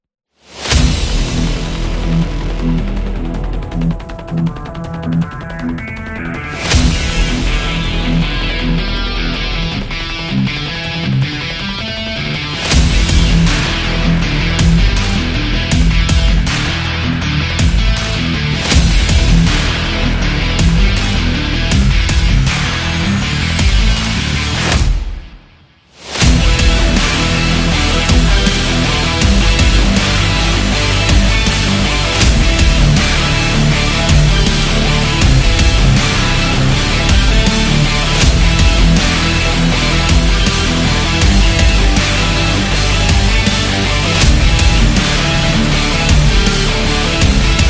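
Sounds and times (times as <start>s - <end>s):
epic rock trailer music: 0.4s - 47.6s.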